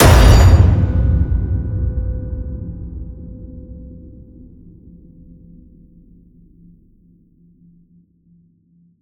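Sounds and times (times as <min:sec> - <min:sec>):
massive cinematic hits: 0:00.0 - 0:05.6.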